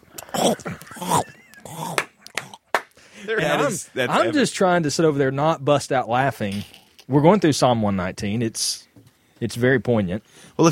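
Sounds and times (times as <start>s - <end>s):
voice imitating loud cereal crunching: 0.1s - 2.7s
speech: 0.4s - 1.4s, 3.3s - 10.6s.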